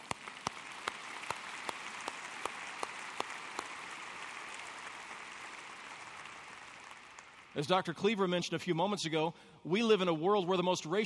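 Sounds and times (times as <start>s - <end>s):
audience applause: 0.0s - 7.6s
speech: 7.6s - 11.0s.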